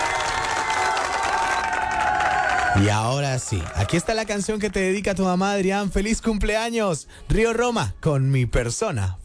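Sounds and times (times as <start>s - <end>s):
applause: 0.0s - 5.2s
speech: 2.8s - 9.2s.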